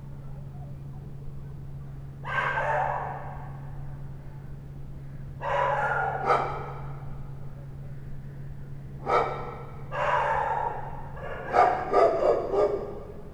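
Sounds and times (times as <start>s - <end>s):
two dogs at night: 2.2s - 3.8s, 5.4s - 7.3s, 9.0s - 13.3s.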